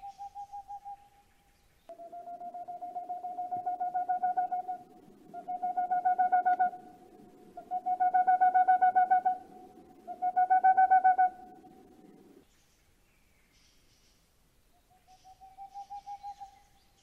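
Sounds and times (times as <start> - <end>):
Boreal owl hooting: 0.0 - 1.1, 1.9 - 12.2, 14.9 - 16.7.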